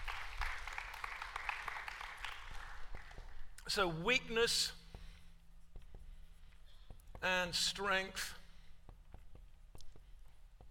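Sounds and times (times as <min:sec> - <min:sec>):
audience applause: 0:00.0 - 0:03.4
speech: 0:03.7 - 0:04.8, 0:07.2 - 0:08.4.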